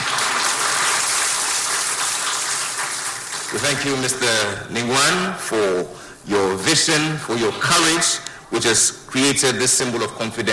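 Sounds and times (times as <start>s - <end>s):
crowd applause: 0.0s - 4.5s
speech: 3.5s - 10.5s.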